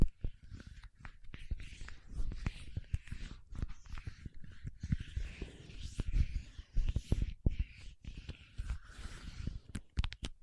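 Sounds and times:
paraffin wax scraping and peeling: 0.2 - 10.3.

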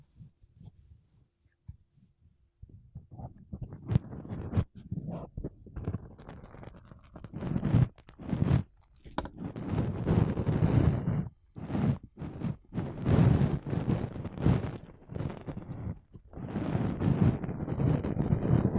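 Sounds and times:
makeup brushes and sponge brushing a microphone: 3.1 - 8.7, 9.4 - 18.7.

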